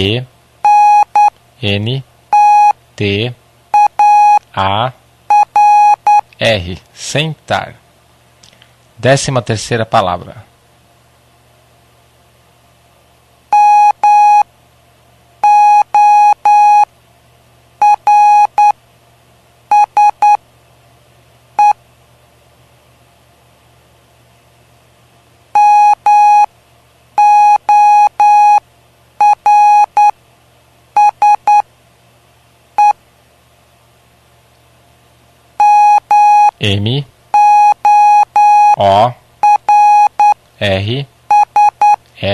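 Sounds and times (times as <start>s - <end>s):
speech: 0.0s - 0.3s, 1.6s - 2.1s, 3.0s - 3.4s, 4.6s - 5.0s, 6.4s - 7.8s, 9.0s - 10.5s, 36.6s - 37.1s, 40.6s - 41.2s
low constant hum: 0.0s - 42.3s
Morse code beeps: 0.6s - 1.3s, 2.3s - 2.8s, 3.8s - 4.4s, 5.3s - 6.2s, 13.5s - 14.4s, 15.4s - 16.9s, 17.8s - 18.8s, 19.7s - 20.4s, 25.6s - 26.5s, 27.2s - 28.6s, 29.2s - 30.2s, 31.0s - 31.6s, 35.6s - 36.6s, 37.4s - 40.4s, 41.3s - 42.0s.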